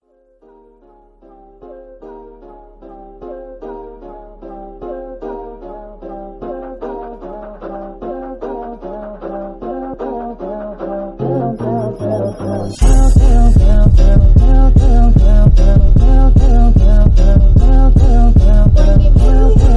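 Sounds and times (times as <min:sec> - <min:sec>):
rap music: 0:07.2 - 0:19.7.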